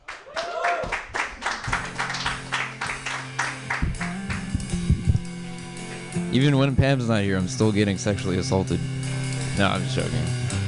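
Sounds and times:
audience clapping: 0:00.0 - 0:04.8
speech: 0:06.3 - 0:09.0, 0:09.6 - 0:10.5.

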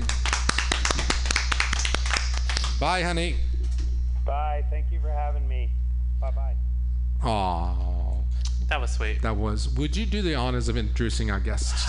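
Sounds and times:
applause: 0:00.0 - 0:02.8
speech: 0:02.8 - 0:03.4, 0:04.3 - 0:08.0, 0:08.6 - 0:11.8.

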